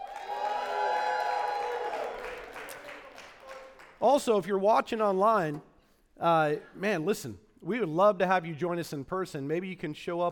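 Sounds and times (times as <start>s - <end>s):
church congregation cheering and whooping: 0.0s - 2.7s
speech: 4.0s - 10.2s.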